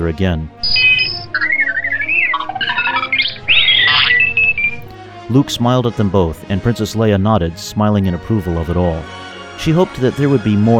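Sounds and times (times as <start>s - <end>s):
speech: 0.0s - 0.6s, 5.3s - 10.7s
droids beeping excitedly: 0.6s - 4.9s.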